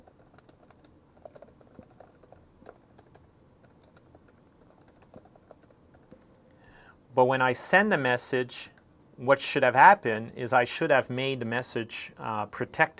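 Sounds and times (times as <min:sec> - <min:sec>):
computer keyboard typing an email subject line: 0:00.0 - 0:06.4
speech: 0:07.2 - 0:12.9.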